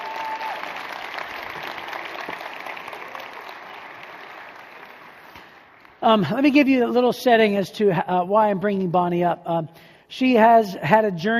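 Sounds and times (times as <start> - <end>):
audience applause: 0.0 - 6.0
speech: 6.0 - 11.3.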